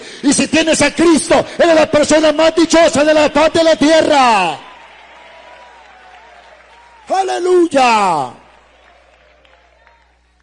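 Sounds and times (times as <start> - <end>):
speech: 0.2 - 4.7, 7.1 - 8.4
church congregation applauding during a sermon: 2.8 - 10.4.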